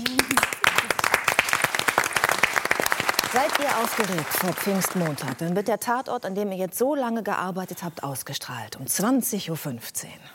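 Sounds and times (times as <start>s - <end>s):
audience applause: 0.0s - 5.6s
speech: 3.4s - 10.3s.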